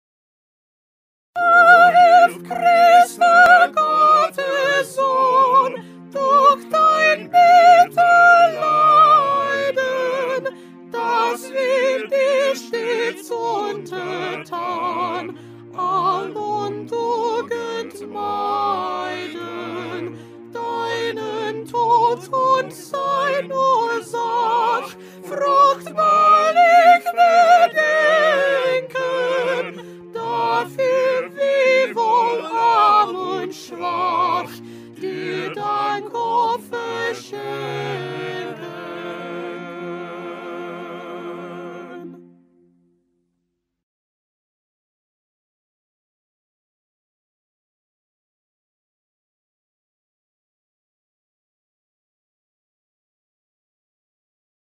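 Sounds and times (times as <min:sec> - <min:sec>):
soprano singing: 0:01.4 - 0:42.3.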